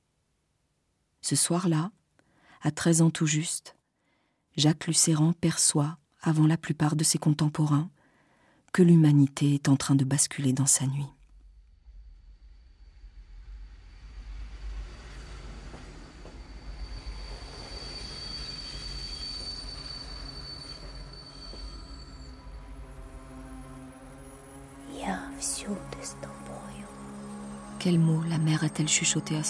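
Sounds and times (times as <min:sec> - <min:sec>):
speech: 0:01.3 - 0:02.0, 0:02.6 - 0:03.8, 0:04.6 - 0:08.0, 0:08.7 - 0:11.2, 0:28.7 - 0:29.4
train metallic whine: 0:11.2 - 0:29.4
train rumbling at a station platform: 0:11.7 - 0:26.9
train wheels squealing: 0:14.6 - 0:23.2.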